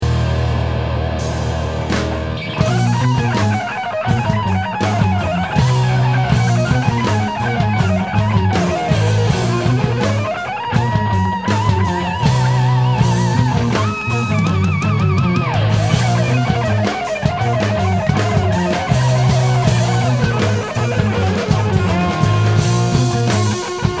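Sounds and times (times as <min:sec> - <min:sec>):
outro solo: 0:00.1 - 0:23.9.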